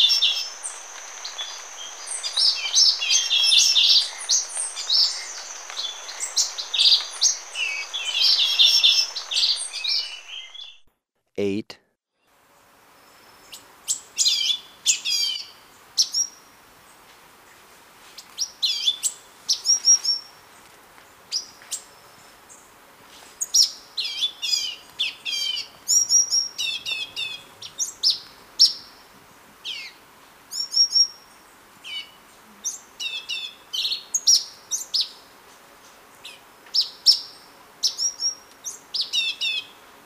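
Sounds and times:
orange-bellied euphonia singing: 0.0 - 10.8
quiet hiss: 0.0 - 11.7, 12.3 - 40.0.

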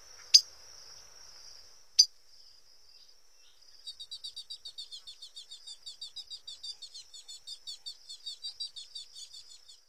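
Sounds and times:
Blue Grosbeak singing: 2.0 - 9.8.

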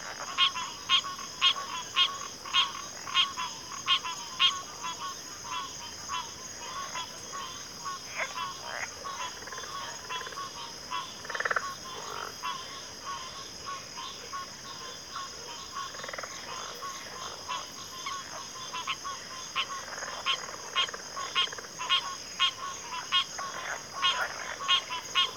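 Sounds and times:
chorus of crickets in a backwater: 0.0 - 25.3.

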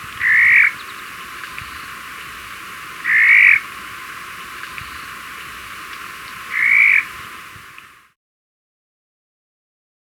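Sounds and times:
Highland Elaenia calling in Ecuador: 0.0 - 7.2.

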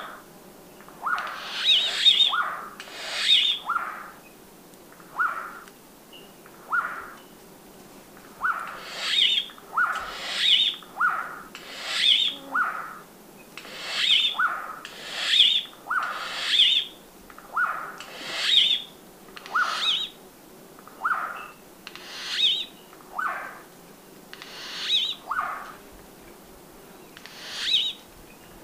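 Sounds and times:
Turquoise Jay calling in Ecuador: 1.0 - 4.2, 5.1 - 5.7, 6.7 - 7.2, 8.4 - 20.2, 21.0 - 23.7, 24.4 - 25.8, 27.2 - 28.0.

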